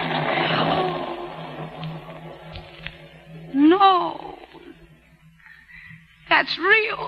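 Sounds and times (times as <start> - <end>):
thunder rumbling: 0.0 - 5.2
droning hum: 0.0 - 7.0
speech: 6.4 - 7.0.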